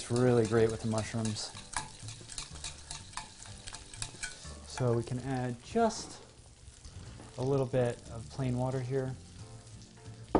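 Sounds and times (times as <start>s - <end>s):
whisking cheese into fonduta: 0.0s - 4.9s
speech: 0.1s - 1.7s, 4.8s - 6.2s, 7.4s - 9.2s.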